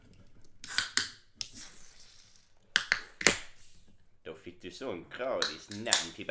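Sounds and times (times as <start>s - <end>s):
beer being opened: 0.4s - 3.7s
speech: 4.7s - 6.3s.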